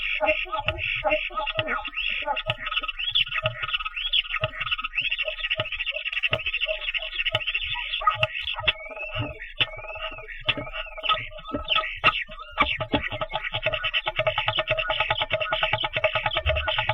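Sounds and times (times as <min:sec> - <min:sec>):
starling singing: 0:00.0 - 0:16.9.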